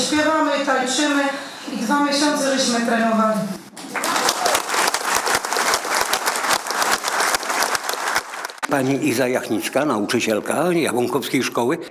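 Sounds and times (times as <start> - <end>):
speech: 0.1 - 4.1, 8.7 - 11.8
audience applause: 3.8 - 8.9.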